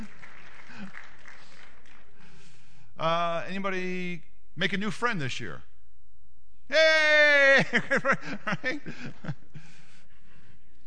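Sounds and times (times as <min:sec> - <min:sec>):
crowd round of applause: 0:00.0 - 0:02.5
speech: 0:03.0 - 0:05.7, 0:06.7 - 0:09.4
laughter: 0:07.4 - 0:10.0.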